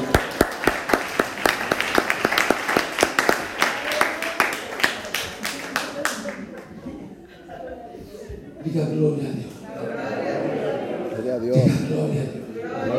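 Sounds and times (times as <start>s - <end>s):
audience applause: 0.0s - 6.8s
laughter: 4.8s - 12.9s.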